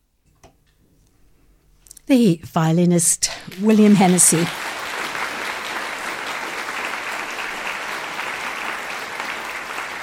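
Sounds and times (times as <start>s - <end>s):
speech: 2.1s - 4.7s
concert audience applause: 3.5s - 10.0s.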